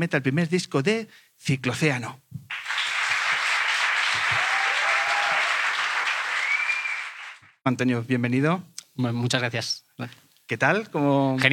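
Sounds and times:
speech: 0.0 - 2.3, 7.6 - 11.5
audience applause: 2.5 - 7.6.

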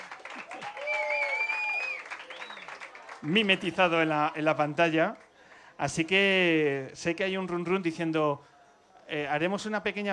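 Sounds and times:
cheering voices: 0.0 - 4.1
crowd applause: 0.0 - 4.2
high whistle-like tones: 0.6 - 2.8
speech: 3.2 - 5.2, 5.8 - 8.5, 9.1 - 10.1.

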